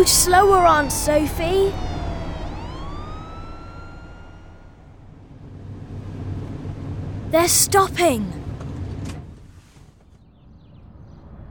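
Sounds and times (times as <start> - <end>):
speech: 0.0 - 1.9, 7.3 - 8.4
fire engine siren: 0.0 - 5.3.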